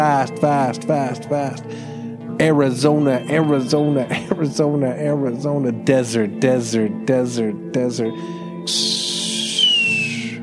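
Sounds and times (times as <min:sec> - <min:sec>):
speech: 0:00.2 - 0:09.2
hawk screeching: 0:08.8 - 0:10.4.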